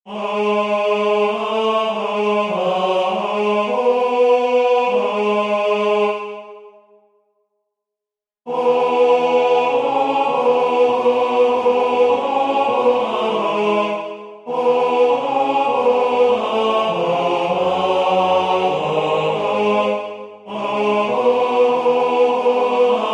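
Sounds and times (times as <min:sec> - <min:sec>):
tenor singing: 0:00.1 - 0:06.6, 0:08.5 - 0:23.1.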